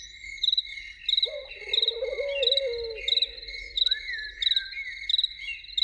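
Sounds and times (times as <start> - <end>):
chorus of crickets chirping: 0.5 - 5.8
loon wavering tremolo call: 1.3 - 4.4.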